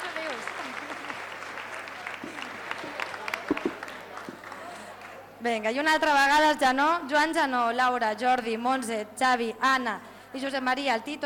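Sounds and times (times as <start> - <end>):
audience applause in assembly hall: 0.0 - 5.2
speech: 5.4 - 11.2.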